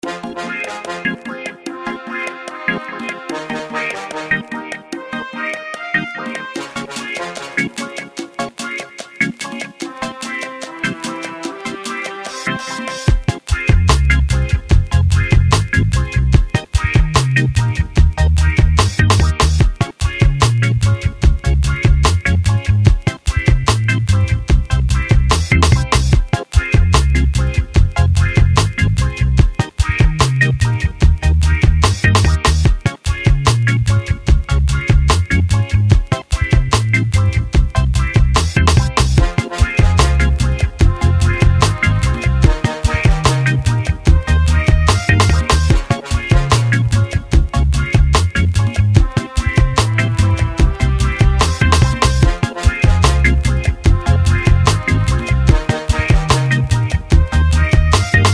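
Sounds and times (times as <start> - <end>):
reggae music: 0.0 - 58.3.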